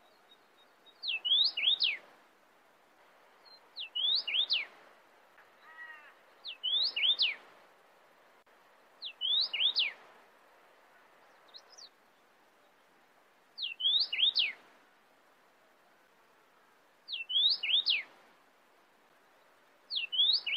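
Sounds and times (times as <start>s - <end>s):
cardinal singing sweeping whistled phrases: 1.0s - 2.0s, 3.8s - 4.7s, 6.5s - 7.4s, 9.0s - 10.0s, 13.6s - 14.6s, 17.1s - 18.0s, 19.9s - 20.5s.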